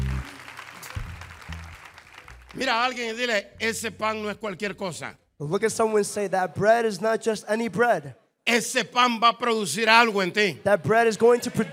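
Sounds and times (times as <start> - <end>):
audience applause: 0.0 - 3.2
speech: 2.6 - 11.7.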